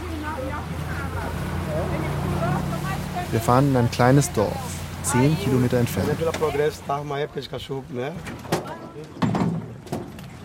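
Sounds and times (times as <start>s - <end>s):
speedboat engine drone pulling away from a ship: 0.0s - 7.0s
wind and water wash: 0.0s - 10.4s
speech: 3.3s - 8.4s.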